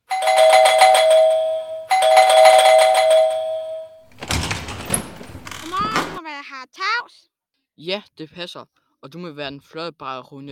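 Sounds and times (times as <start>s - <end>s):
doorbell ringing: 0.0s - 4.4s
speech: 7.8s - 10.5s.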